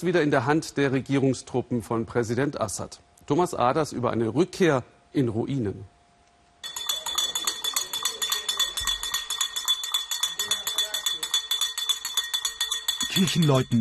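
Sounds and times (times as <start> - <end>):
speech: 0.0 - 5.9, 13.2 - 13.7
church bells ringing in Homs: 6.6 - 13.7.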